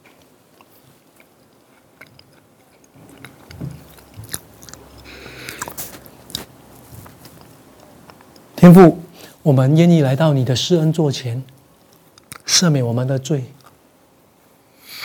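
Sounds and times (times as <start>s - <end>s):
church congregation eating communion bread: 0.0s - 8.6s
speech: 8.6s - 11.6s, 12.5s - 13.6s.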